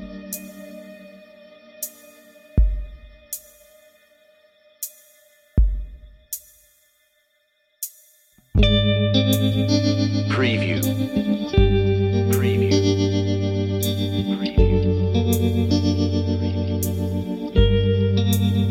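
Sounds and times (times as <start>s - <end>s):
spooky guitar picking: 0.0s - 3.4s, 8.6s - 18.6s.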